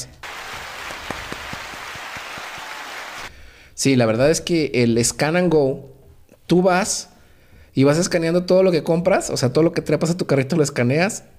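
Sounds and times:
applause: 0.0 - 3.3
speech: 3.8 - 7.1, 7.8 - 11.3.

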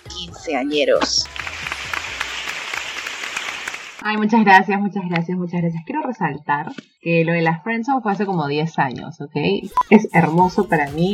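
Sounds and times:
steady applause from a group: 0.0 - 4.0
speech: 0.2 - 1.3, 4.0 - 11.1.

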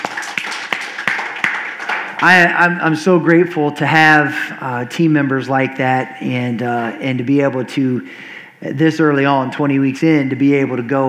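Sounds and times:
audience clapping hands: 0.0 - 2.7
speech: 2.2 - 11.0.

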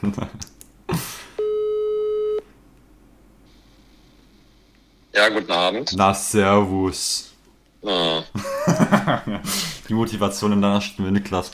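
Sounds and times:
speech: 0.0 - 1.1, 5.2 - 11.5
telephone ringback tone: 1.4 - 2.4
laughter: 8.3 - 9.6.

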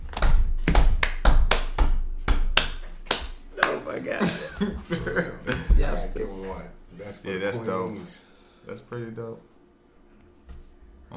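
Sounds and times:
hand clapping: 0.0 - 4.1, 5.0 - 5.8
speech: 4.0 - 9.5
laughter: 4.1 - 6.2.

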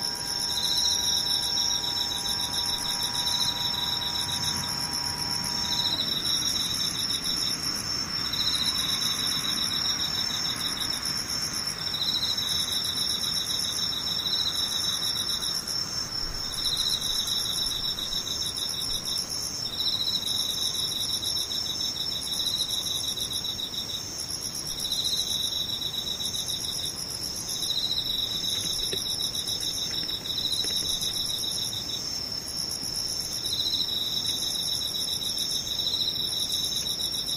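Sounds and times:
faint tone: 0.0 - 7.3
insects trilling: 0.0 - 37.3.

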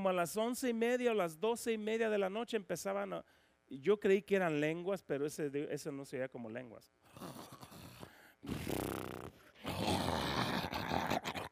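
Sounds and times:
speech: 0.0 - 7.7
person imitating snoring: 7.1 - 11.5.

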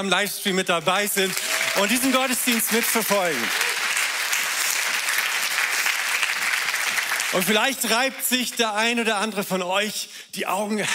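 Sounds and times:
speech: 0.0 - 3.6, 7.3 - 10.9
audience applauding: 1.0 - 8.5.

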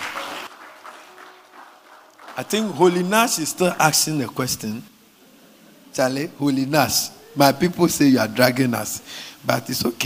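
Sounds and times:
audience clapping: 0.0 - 3.8
speech: 2.4 - 4.9, 6.0 - 10.0.

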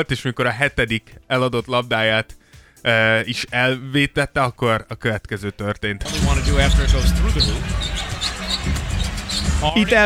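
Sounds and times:
speech: 0.0 - 8.0, 9.6 - 10.0
basketball crowd booing: 6.1 - 9.8.

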